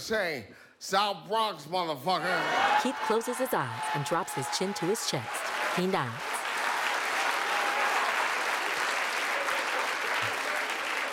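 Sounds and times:
speech: 0.0s - 6.3s
audience applause: 2.4s - 11.1s.

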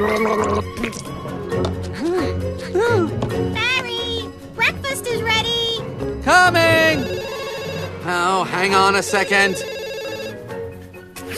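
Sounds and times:
person gargling honey mouthwash: 0.0s - 1.1s
speech: 0.0s - 1.8s, 8.1s - 9.8s
music: 0.0s - 11.3s.

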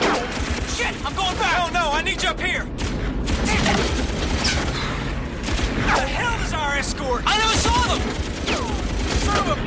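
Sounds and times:
gunfire in a WWII bomber air battle: 0.0s - 1.8s, 2.7s - 6.1s, 7.4s - 9.6s
speech: 1.1s - 2.8s, 6.8s - 9.6s.

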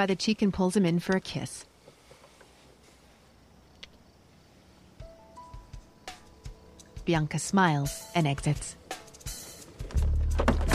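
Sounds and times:
speech: 0.0s - 1.7s, 7.1s - 8.8s
car door shutting: 9.8s - 10.7s.

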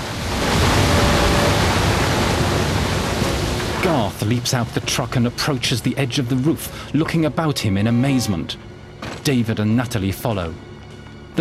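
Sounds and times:
tidal wave flood water rushing past a concrete building: 0.0s - 8.9s
speech: 4.0s - 10.7s.

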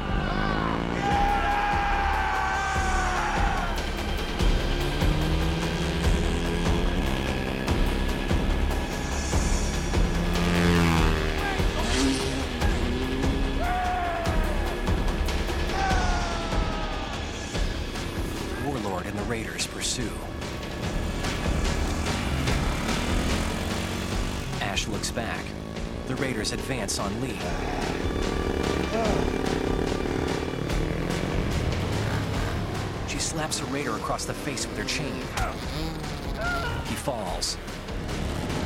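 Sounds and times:
voices and shouts: 0.0s - 3.8s, 13.5s - 14.9s, 15.6s - 17.3s, 36.4s - 37.1s
motorbike engines revving as they ride off: 0.0s - 38.6s
speech: 26.6s - 27.8s, 33.4s - 36.2s, 37.0s - 37.8s.

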